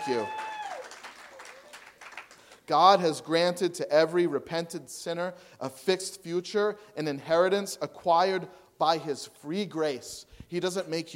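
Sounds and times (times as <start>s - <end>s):
speech: 0.0s - 0.5s, 2.7s - 11.1s
weak applause: 0.0s - 2.7s.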